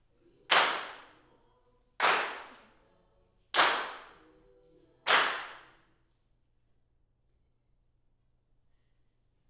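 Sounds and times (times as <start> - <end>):
claps: 0.5 - 1.2, 2.0 - 2.7, 3.6 - 4.2, 5.1 - 5.7.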